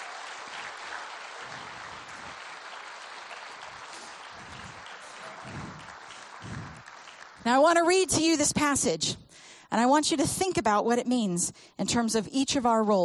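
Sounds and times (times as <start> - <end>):
crowd applauding: 0.0 - 7.8
speech: 7.4 - 13.0.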